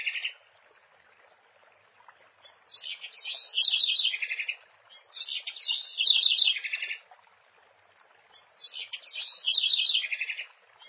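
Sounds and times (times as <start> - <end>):
house wren song: 2.4 - 7.0, 8.3 - 10.8.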